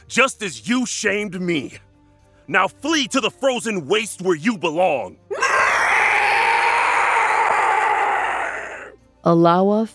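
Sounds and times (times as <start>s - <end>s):
speech: 0.1s - 1.9s, 2.5s - 5.2s, 9.2s - 9.9s
monstrous bellow of an ice giant: 5.3s - 9.0s.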